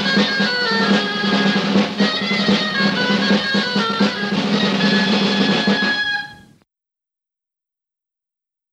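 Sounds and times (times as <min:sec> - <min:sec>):
traditional Spanish dance music from Valladolid: 0:00.0 - 0:06.6.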